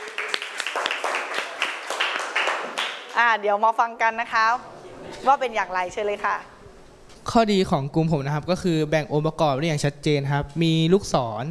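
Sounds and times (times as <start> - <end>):
classroom clapping for a group: 0.0 - 3.3
speech: 3.2 - 6.5, 7.2 - 11.5.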